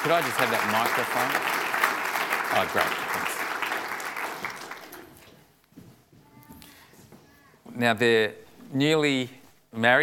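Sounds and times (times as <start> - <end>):
speech: 0.0 - 1.6, 2.5 - 3.2, 7.8 - 10.0
audience applause welcoming a newly married missionary couple from Russia: 0.0 - 5.2.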